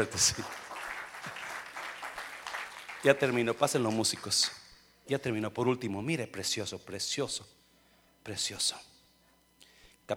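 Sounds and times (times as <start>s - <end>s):
speech: 0.0s - 0.6s, 3.0s - 7.6s, 8.2s - 8.9s
audience applause: 0.0s - 3.6s.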